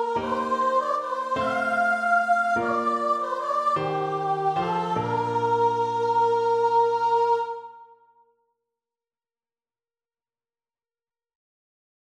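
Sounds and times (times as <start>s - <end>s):
unison choir singing: 0.0s - 8.2s.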